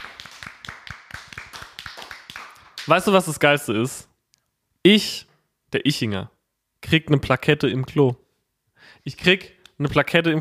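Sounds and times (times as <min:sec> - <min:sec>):
applause: 0:00.0 - 0:03.1
speech: 0:02.9 - 0:04.1, 0:04.8 - 0:08.2, 0:08.8 - 0:10.3.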